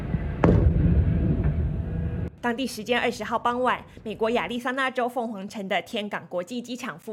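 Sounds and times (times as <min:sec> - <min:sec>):
propane tank explosions: 0:00.0 - 0:02.4
constant low rumble: 0:00.0 - 0:04.5
speech: 0:02.4 - 0:07.1.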